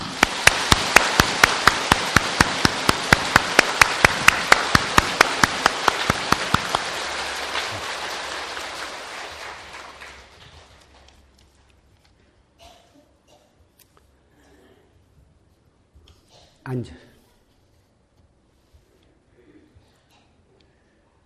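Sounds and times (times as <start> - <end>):
audience applause: 0.0 - 11.2.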